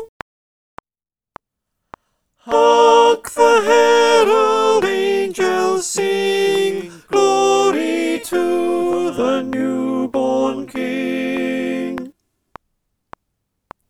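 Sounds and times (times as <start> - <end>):
alto refrain: 2.5 - 12.1.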